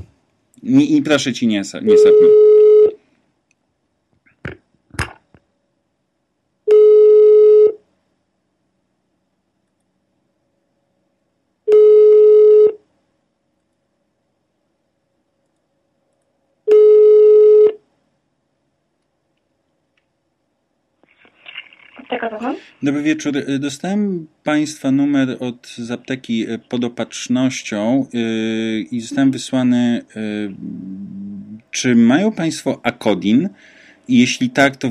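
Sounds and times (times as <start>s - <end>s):
speech: 0.6s - 2.4s, 22.4s - 34.8s
telephone ringback tone: 1.9s - 3.0s, 6.7s - 7.8s, 11.7s - 12.8s, 16.7s - 17.8s.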